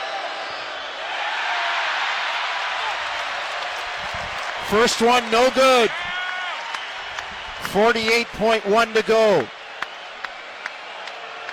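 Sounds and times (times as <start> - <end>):
arena crowd roaring in reaction to a free throw: 0.0 - 11.5
scattered clapping: 2.4 - 11.5
speech: 4.7 - 6.1, 7.7 - 9.6.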